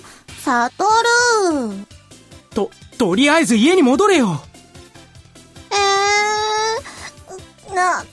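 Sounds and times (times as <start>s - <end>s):
speech: 0.5s - 1.9s, 2.6s - 4.5s
person crying out in a loud wail: 5.8s - 8.0s.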